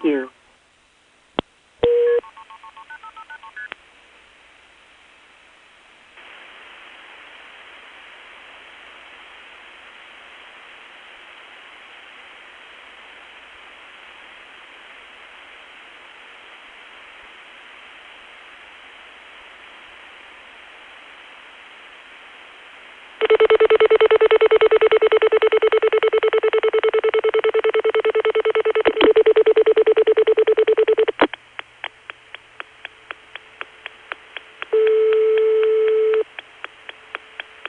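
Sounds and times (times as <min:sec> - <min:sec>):
telephone line static hiss: 0:00.0 - 0:37.6
touch-tone DTMF dialing beeps on a calling card: 0:23.2 - 0:31.3, 0:34.6 - 0:36.3
loud steady telephone tone: 0:23.2 - 0:37.6.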